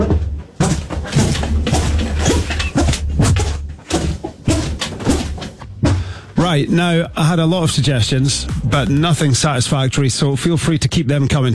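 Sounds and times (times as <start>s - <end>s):
squeaking trainers: 0.0s - 6.3s
speech: 6.5s - 11.5s.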